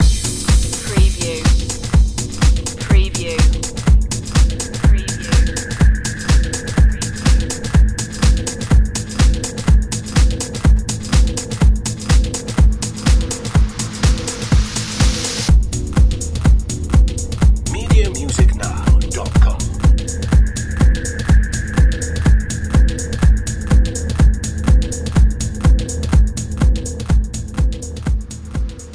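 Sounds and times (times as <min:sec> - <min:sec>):
systemic beats: 0:00.0 - 0:28.9.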